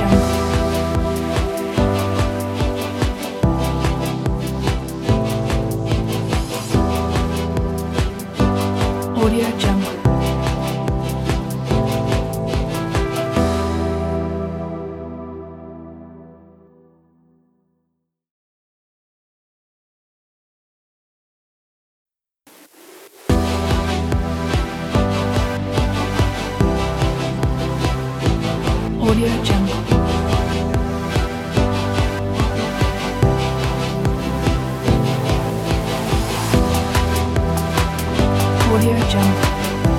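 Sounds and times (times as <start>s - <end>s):
future ambient electro drum kit: 0.0s - 14.5s, 23.2s - 39.9s.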